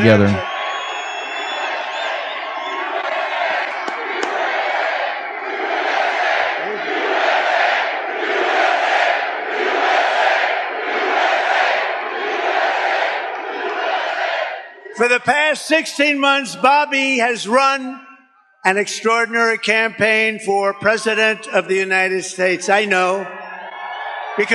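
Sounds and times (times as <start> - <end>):
speech: 0.0 - 0.5, 15.0 - 23.4, 24.4 - 24.5
crowd chanting: 0.0 - 15.3
large rally crowd roaring and cheering: 0.0 - 17.9, 18.7 - 24.5.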